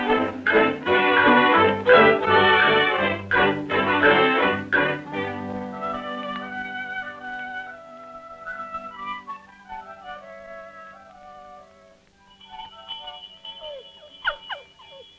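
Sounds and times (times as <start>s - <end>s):
farm dinner bell ringing: 0.0s - 5.4s, 12.2s - 15.1s.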